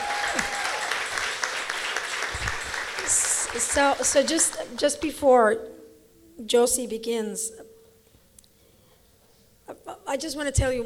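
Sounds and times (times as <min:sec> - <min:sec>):
crowd applauding: 0:00.0 - 0:04.9
speech: 0:03.6 - 0:05.8, 0:06.4 - 0:07.6, 0:10.1 - 0:10.8.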